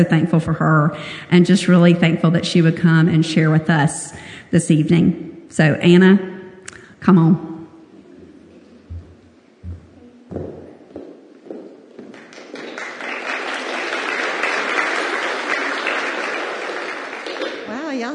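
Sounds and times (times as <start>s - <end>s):
speech: 0.0s - 6.3s, 7.0s - 7.5s
audience clapping: 11.8s - 17.8s.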